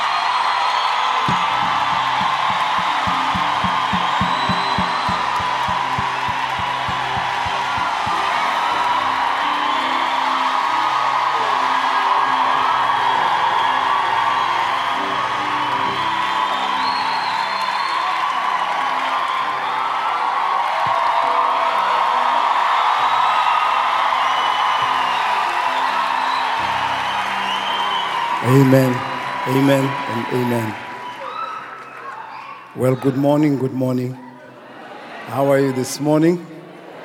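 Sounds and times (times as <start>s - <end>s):
church crowd applauding and cheering: 0.0s - 37.0s
rhythmic low thumps: 1.3s - 8.6s
speech: 29.7s - 30.9s, 32.8s - 34.2s, 35.3s - 36.5s.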